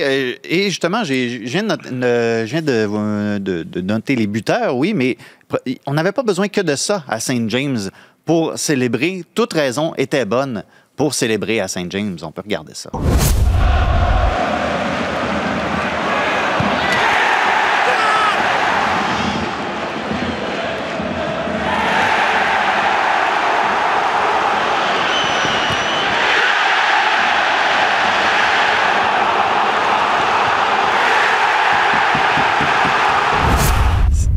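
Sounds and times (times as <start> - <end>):
speech: 0.0 - 14.1
stadium crowd roaring and cheering: 13.4 - 34.1.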